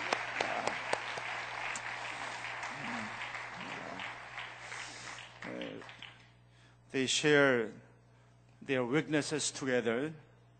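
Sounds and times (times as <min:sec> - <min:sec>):
audience applause: 0:00.0 - 0:06.3
speech: 0:06.9 - 0:07.8, 0:08.7 - 0:10.3.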